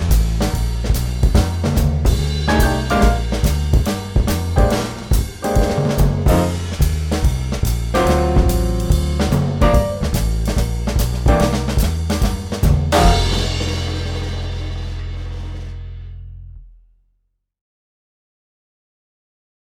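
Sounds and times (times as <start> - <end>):
jazz wind instruments: 0.0 - 15.7
up-tempo blues backing track: 2.1 - 13.8.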